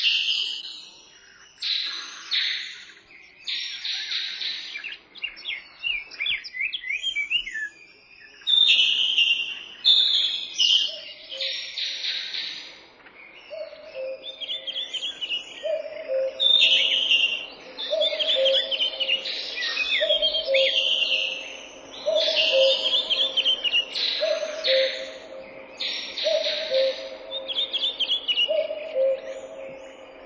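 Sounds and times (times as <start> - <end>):
forest birds: 0.0 - 30.2.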